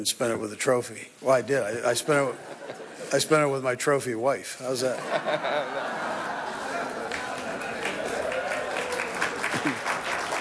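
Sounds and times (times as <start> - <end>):
speech: 0.0 - 6.2
laughter: 1.9 - 3.1, 4.8 - 10.3
media crowd applauding: 6.1 - 10.3.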